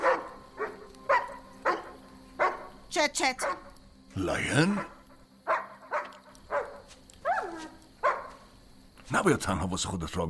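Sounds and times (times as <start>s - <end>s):
dog barking: 0.0s - 2.8s, 3.4s - 3.7s, 4.6s - 8.5s
speech: 2.9s - 3.6s, 4.2s - 5.0s, 9.1s - 10.2s.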